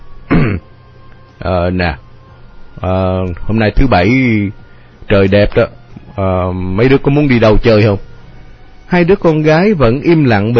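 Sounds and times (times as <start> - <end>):
man clearing his throat: 0.3 - 0.7
speech: 1.4 - 2.0, 2.8 - 8.1, 8.9 - 10.5.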